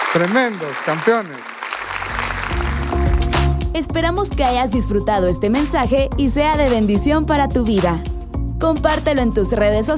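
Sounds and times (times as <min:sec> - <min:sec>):
audience applause: 0:00.0 - 0:03.5
speech: 0:00.1 - 0:02.6, 0:03.8 - 0:09.9.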